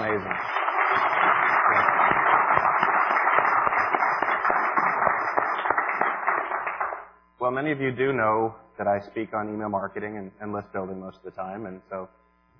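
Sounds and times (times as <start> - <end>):
audience clapping: 0.0 - 7.1
speech: 7.5 - 12.2.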